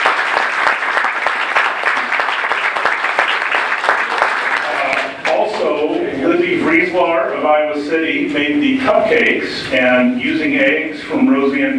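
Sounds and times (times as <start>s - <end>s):
audience applause: 0.0s - 5.7s
speech: 6.9s - 11.7s.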